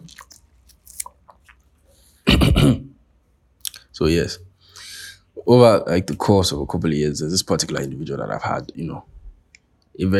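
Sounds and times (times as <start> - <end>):
person drinking water: 0.0 - 2.4
speech: 2.6 - 2.8, 4.0 - 4.5, 5.5 - 9.1, 10.0 - 10.1.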